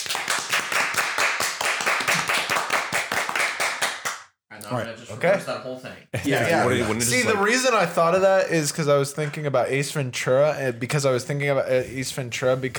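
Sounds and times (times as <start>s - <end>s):
rapid hand clapping: 0.0s - 4.3s
speech: 4.7s - 12.7s.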